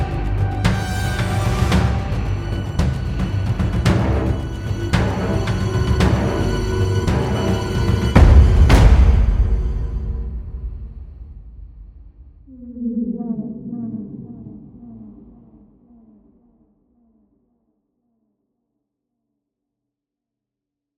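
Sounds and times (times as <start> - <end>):
horror remix music: 0.0 - 11.1.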